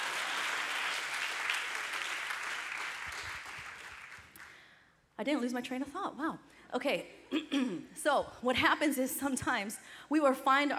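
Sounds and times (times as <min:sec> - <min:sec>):
audience clapping hands: 0:00.0 - 0:04.7
speech: 0:05.2 - 0:10.7.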